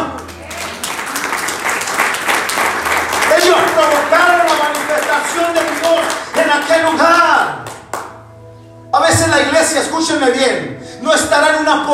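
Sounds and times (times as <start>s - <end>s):
audience applause: 0.0s - 6.9s
speech: 5.3s - 7.7s, 9.0s - 11.9s.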